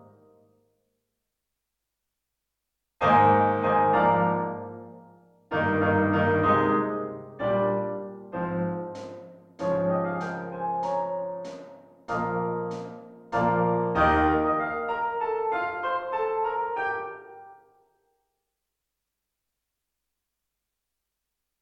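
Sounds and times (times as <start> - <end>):
slow piano: 3.0 - 17.8.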